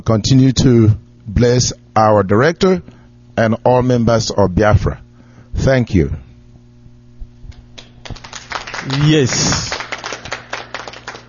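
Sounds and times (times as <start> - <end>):
speech: 0.0 - 5.0, 5.6 - 6.2, 8.8 - 9.8
low constant hum: 0.0 - 11.2
audience clapping: 7.5 - 11.2.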